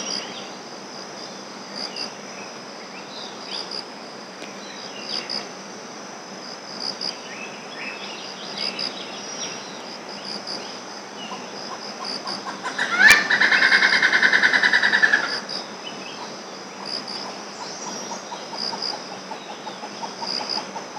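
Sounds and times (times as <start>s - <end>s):
Malabar grey hornbill harsh cackle: 12.2s - 15.5s.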